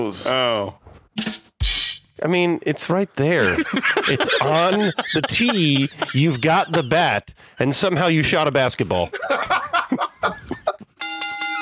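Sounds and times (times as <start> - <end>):
speech: 0.0 - 1.4, 2.2 - 10.4
laughter: 3.4 - 8.2, 9.0 - 10.9
bell sound effect: 11.0 - 11.6.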